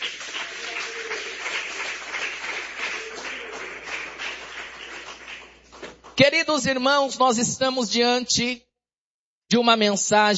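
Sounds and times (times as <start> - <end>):
audience applauding: 0.0 - 6.2
speech: 6.2 - 8.7, 9.5 - 10.3.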